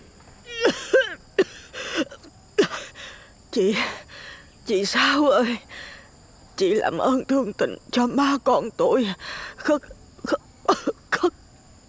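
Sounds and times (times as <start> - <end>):
old woman's heavy wheezy coughing: 0.6 - 3.0
speech: 3.6 - 4.0, 4.7 - 5.9, 6.6 - 10.9.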